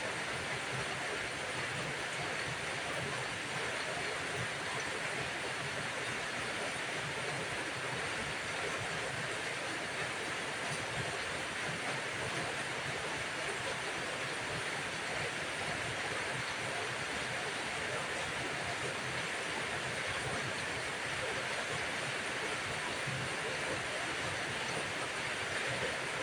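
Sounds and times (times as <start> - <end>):
rain: 0.0 - 26.2.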